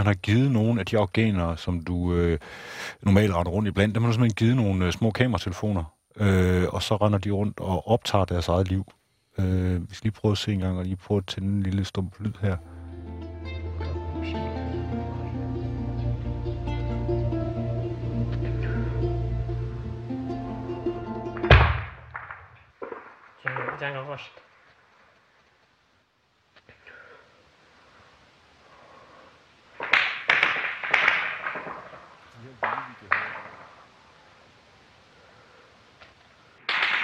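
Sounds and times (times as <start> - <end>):
speech: 0.0 - 12.7, 23.8 - 24.4
droning tonal hum: 12.6 - 21.4
gunshots from fighting in a back garden: 21.4 - 24.1, 29.8 - 33.8, 36.7 - 37.0.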